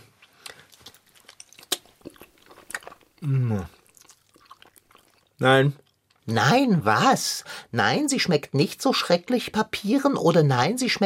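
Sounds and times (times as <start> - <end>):
person biting and chewing a sausage: 0.0 - 6.2
speech: 3.2 - 3.8, 5.4 - 11.0.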